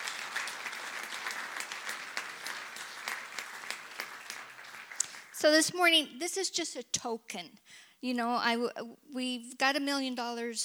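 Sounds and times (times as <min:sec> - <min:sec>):
crowd clapping: 0:00.0 - 0:05.7
speech: 0:05.4 - 0:10.6.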